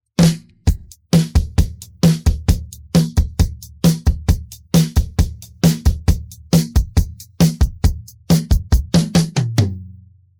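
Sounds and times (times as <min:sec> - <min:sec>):
drum pattern: 0:00.2 - 0:09.8.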